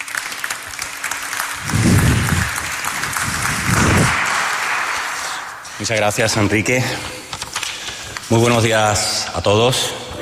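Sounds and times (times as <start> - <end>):
audience applause: 0.0 - 5.9
speech: 5.8 - 7.2, 8.3 - 10.2.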